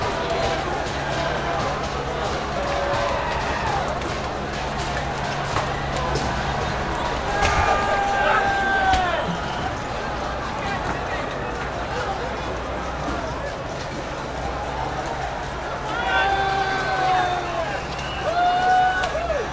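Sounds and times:
demonstration riot crowd: 0.0s - 19.5s.

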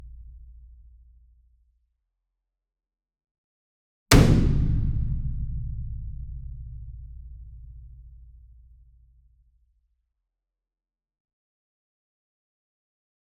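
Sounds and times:
gong hit with medium whip beater: 4.1s - 5.7s.

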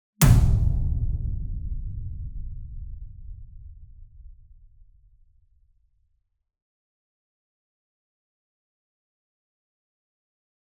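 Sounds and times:
single 66 Inch drum hit with whip beater near: 0.2s - 5.5s.

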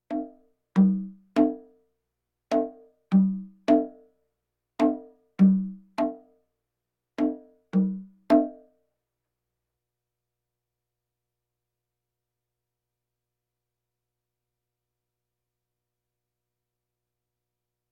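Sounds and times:
bongos: 0.0s - 1.7s, 2.5s - 4.0s, 4.8s - 6.4s, 7.2s - 8.7s.

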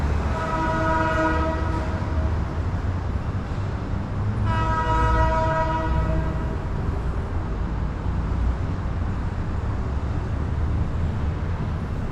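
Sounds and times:
train: 0.0s - 12.1s
truck horns: 0.1s - 2.5s, 4.4s - 6.7s.

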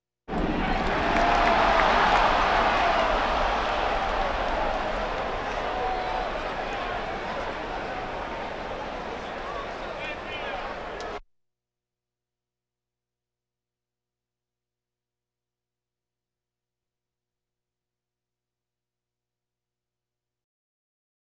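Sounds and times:
crowds: 0.3s - 11.2s.

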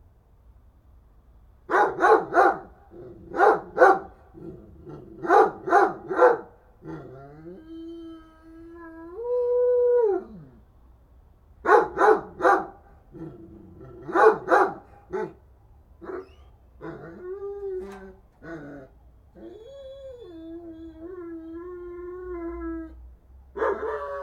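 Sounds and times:
dog barking: 1.7s - 4.2s, 5.2s - 6.6s, 11.6s - 12.8s, 14.0s - 15.4s, 23.6s - 24.0s.

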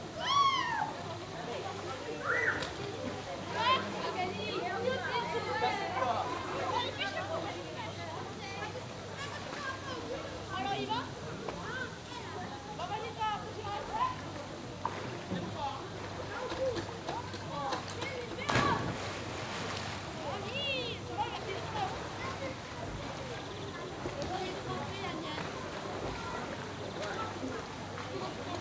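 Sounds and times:
people at an exterior swimming pool: 0.0s - 28.5s.

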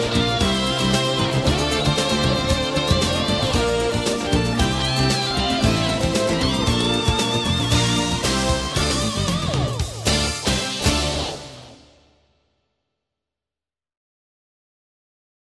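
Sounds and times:
rock music: 0.0s - 12.2s.

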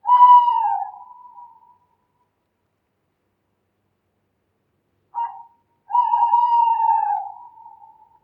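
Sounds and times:
owl: 0.0s - 1.9s, 5.1s - 8.2s.

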